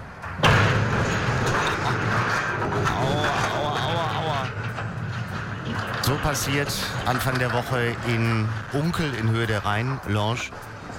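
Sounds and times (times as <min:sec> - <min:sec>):
cargo ship grinding and rumbling against a jetty: 0:00.0 - 0:10.9
cargo ship crashing into a jetty: 0:00.2 - 0:09.4
creaking and squealing scrapes: 0:00.2 - 0:10.9
speech: 0:06.2 - 0:10.7.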